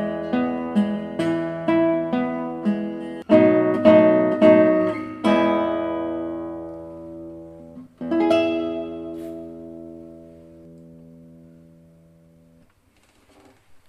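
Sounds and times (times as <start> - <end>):
guitar: 0.0 - 12.8.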